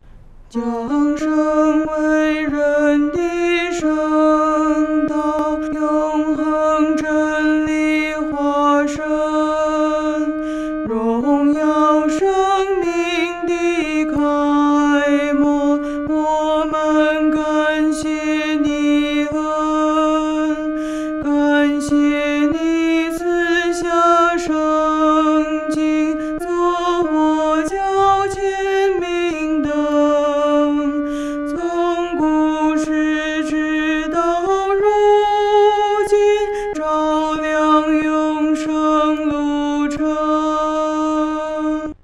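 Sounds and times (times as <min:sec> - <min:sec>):
solo singing: 0:00.5 - 0:42.0.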